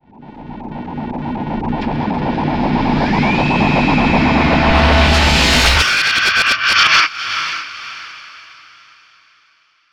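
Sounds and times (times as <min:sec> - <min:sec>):
rising tension build: 0:00.0 - 0:06.5.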